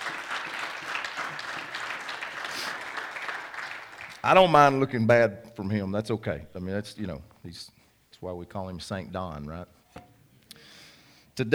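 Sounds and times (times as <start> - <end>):
audience round of applause: 0.0 - 4.6
speech: 4.2 - 9.8, 11.4 - 11.5.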